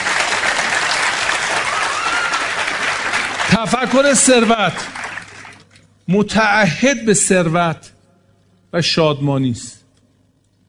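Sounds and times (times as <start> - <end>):
audience applause: 0.0 - 5.7
speech: 3.5 - 5.0, 6.1 - 7.9, 8.7 - 9.8.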